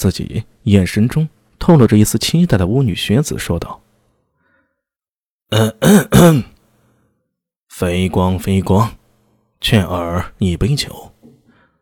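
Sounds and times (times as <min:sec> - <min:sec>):
speech: 0:00.0 - 0:03.8, 0:05.5 - 0:06.5, 0:07.8 - 0:09.0, 0:09.6 - 0:11.1
throat clearing: 0:05.5 - 0:06.6.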